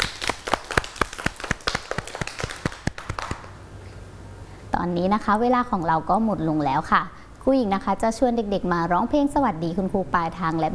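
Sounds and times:
children clapping: 0.0s - 3.6s
speech: 4.8s - 10.7s.

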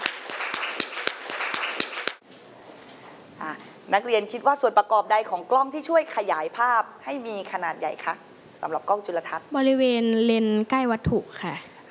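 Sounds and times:
students clapping: 0.0s - 2.2s
speech: 3.5s - 11.7s.

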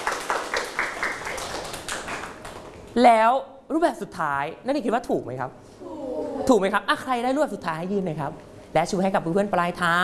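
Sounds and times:
students clapping: 0.0s - 2.8s
speech: 3.0s - 10.0s.

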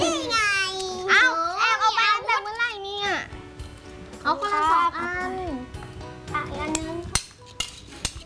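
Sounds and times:
busy kitchen noise: 0.0s - 8.2s
spoons and dishes clinking: 6.6s - 8.2s.

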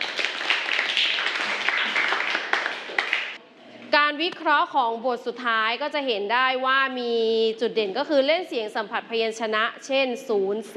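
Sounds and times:
applause from a group of people: 0.0s - 3.4s
speech: 4.2s - 10.7s.

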